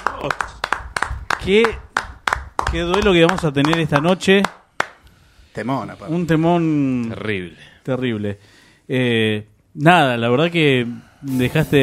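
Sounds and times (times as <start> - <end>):
audience hand claps: 0.0 - 5.0
speech: 0.2 - 0.5, 1.4 - 1.8, 2.7 - 4.6, 5.6 - 11.8.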